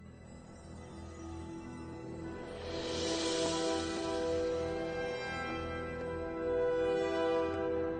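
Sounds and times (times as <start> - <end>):
theme music: 2.0 - 7.9.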